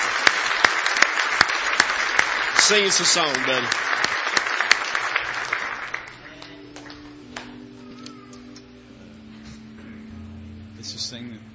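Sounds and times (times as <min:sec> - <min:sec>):
hand clapping of praise: 0:00.0 - 0:08.7
speech: 0:02.6 - 0:04.0.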